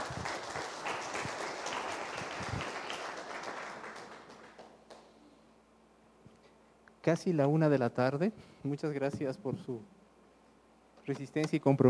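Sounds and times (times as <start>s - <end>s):
audience applause: 0.0s - 5.1s
speech: 7.1s - 10.0s, 11.1s - 11.8s.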